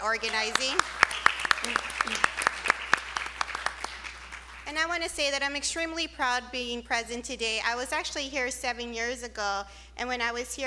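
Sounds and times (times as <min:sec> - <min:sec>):
speech: 0:00.0 - 0:02.3, 0:04.7 - 0:10.6
audience applause: 0:00.0 - 0:04.7.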